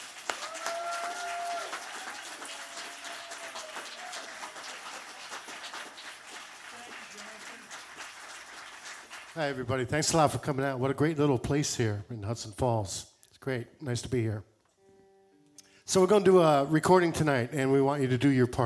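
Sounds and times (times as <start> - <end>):
crowd whooping: 0.0 - 5.6
crowd applauding a band: 0.0 - 10.4
whistle-like cheer: 0.3 - 5.1
speech: 9.4 - 14.5, 15.9 - 18.6.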